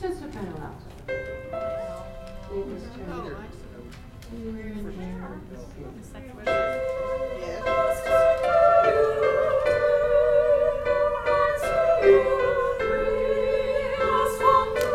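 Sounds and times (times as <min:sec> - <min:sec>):
soprano singing: 0:06.5 - 0:14.9.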